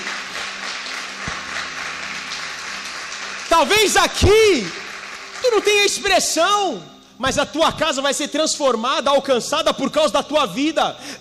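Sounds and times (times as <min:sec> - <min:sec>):
audience applauding: 0:00.0 - 0:06.4
speech: 0:03.6 - 0:04.8, 0:05.5 - 0:11.1.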